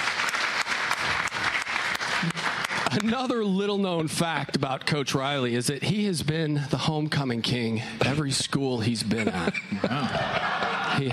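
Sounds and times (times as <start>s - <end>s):
audience round of applause: 0.0s - 3.6s
laughter: 2.2s - 3.3s, 9.0s - 11.1s
speech: 3.0s - 11.1s.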